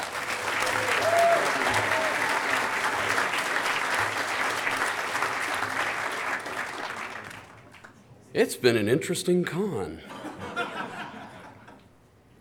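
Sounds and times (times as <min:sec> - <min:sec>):
crowd applause: 0:00.0 - 0:07.9
faint whoops and voices: 0:00.6 - 0:03.0
speech: 0:08.4 - 0:10.1
laughter: 0:10.0 - 0:11.9.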